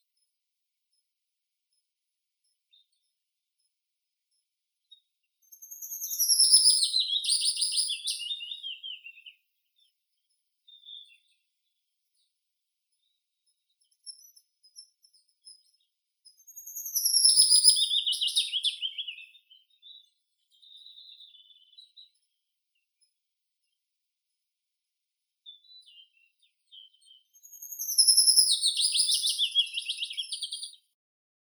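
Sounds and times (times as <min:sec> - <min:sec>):
willow warbler Phylloscopus trochilus: 0:05.5 - 0:09.4, 0:16.3 - 0:22.2, 0:25.5 - 0:30.8.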